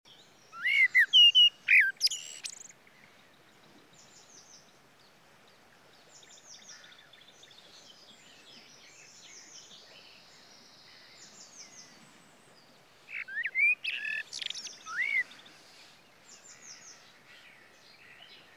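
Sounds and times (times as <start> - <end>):
common blackbird singing: 0.5 - 2.7, 13.1 - 15.4
faint high chirps from other birds: 0.5 - 2.7, 13.1 - 15.4.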